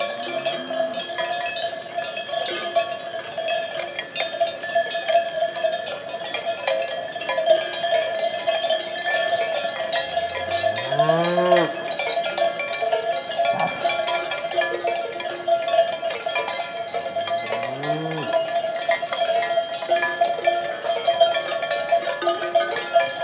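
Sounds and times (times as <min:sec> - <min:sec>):
cowbells ringing on a grazing herd: 0:00.0 - 0:23.2
cow mooing: 0:10.1 - 0:12.0, 0:13.4 - 0:14.3, 0:17.2 - 0:18.6.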